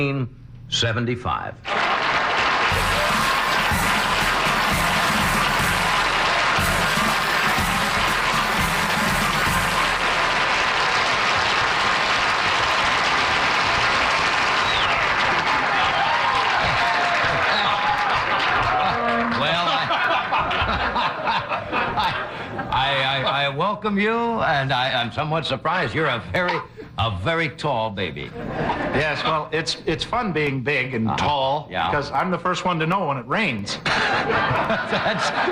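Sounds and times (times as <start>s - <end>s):
speech: 0.0s - 1.8s, 23.8s - 35.5s
audience applause: 1.6s - 22.6s
audience chuckling: 1.7s - 15.9s, 17.0s - 22.7s, 28.3s - 29.4s, 33.8s - 35.5s.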